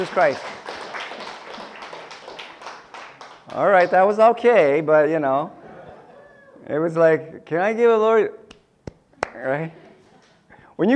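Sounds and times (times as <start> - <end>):
speech: 0.0 - 0.6, 3.5 - 5.6, 6.6 - 8.4, 9.4 - 9.8, 10.8 - 10.9
congregation clapping at a church service: 0.0 - 4.2
laughter: 5.5 - 6.6, 9.6 - 10.5.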